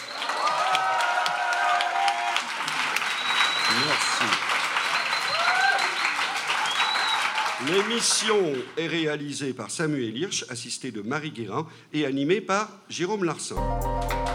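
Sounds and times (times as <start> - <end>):
theatre audience whistles and cheers: 0.0 - 7.8
theatre audience clapping: 0.0 - 9.2
speech: 7.6 - 14.3.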